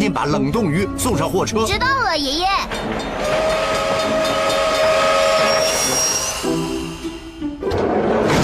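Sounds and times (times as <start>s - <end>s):
speech: 0.2s - 4.2s
train rumbling: 1.1s - 8.3s
high squealing tones: 3.5s - 7.5s.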